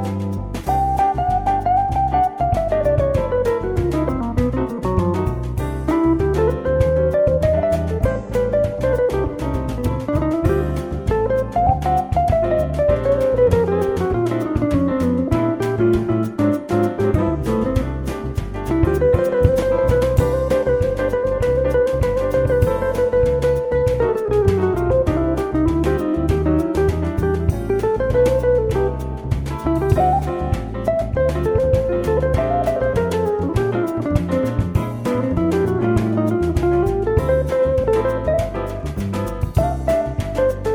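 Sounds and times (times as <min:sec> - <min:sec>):
sampled Akai S5000 MegaPiano solo: 0:00.0 - 0:40.7.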